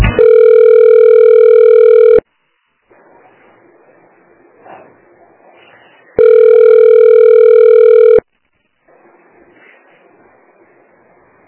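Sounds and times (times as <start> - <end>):
telephone ringback tone while calling a family member: 0.2 - 2.2, 6.2 - 8.2.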